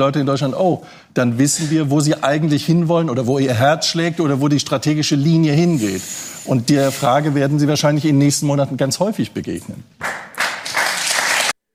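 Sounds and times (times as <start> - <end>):
speech: 0.0 - 10.1
audience clapping: 10.0 - 11.6.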